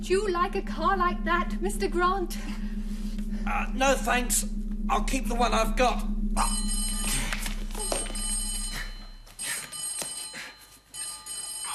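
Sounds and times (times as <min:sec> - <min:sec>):
speech: 0:00.0 - 0:02.8, 0:03.5 - 0:07.2
steady low hum: 0:00.0 - 0:09.4
telephone bell ringing: 0:07.8 - 0:11.7.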